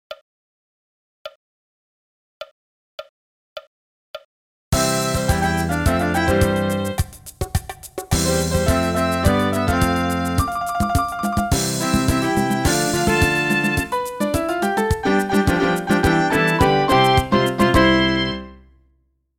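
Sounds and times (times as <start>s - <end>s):
MIDI music: 4.8s - 18.6s.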